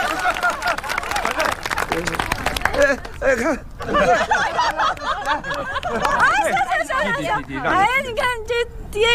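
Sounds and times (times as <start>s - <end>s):
small group clapping: 0.0s - 3.5s, 4.5s - 6.6s
voices talking and laughing: 0.0s - 9.1s
speech: 2.8s - 9.1s.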